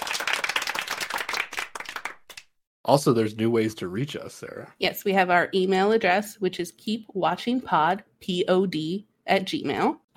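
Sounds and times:
round of applause, clapping: 0.0s - 2.6s
speech: 2.9s - 10.1s.

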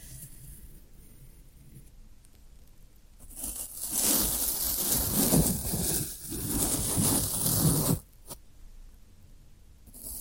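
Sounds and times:
floral foam being handled: 3.3s - 8.1s.

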